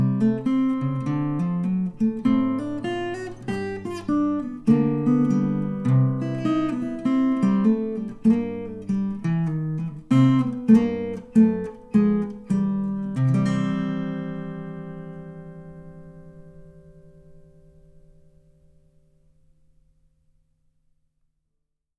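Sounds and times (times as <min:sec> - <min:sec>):
country road blues music: 0:00.0 - 0:16.5.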